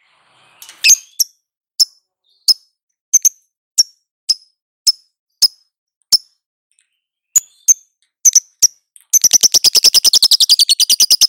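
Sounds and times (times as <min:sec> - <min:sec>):
lovebird calls: 0:07.4 - 0:11.2.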